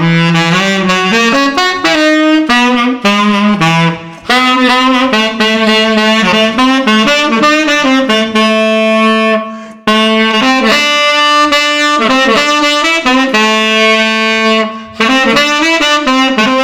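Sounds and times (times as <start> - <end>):
street saxophone playing: 0.0 - 16.6.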